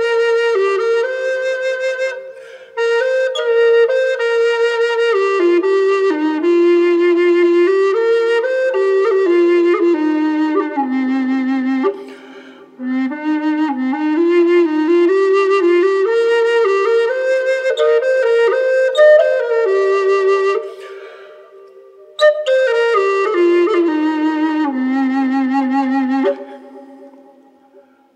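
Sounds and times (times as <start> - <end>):
wet bass flute in C with bird's eye maple inlay: 0.0 - 28.1.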